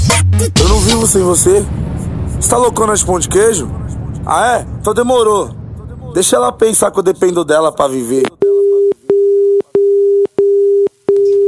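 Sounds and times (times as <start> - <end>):
speech: 0.4 - 8.4
phone busy tone after hanging up: 8.6 - 11.4.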